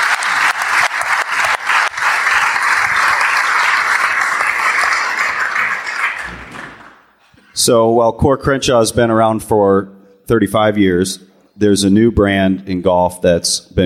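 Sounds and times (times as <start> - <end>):
audience applause: 0.0 - 7.2
speech: 7.6 - 13.8.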